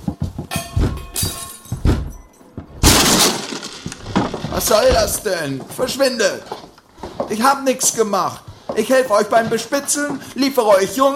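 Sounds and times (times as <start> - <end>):
door being forced open: 1.7 - 5.4
speech: 4.6 - 6.6, 7.3 - 11.1.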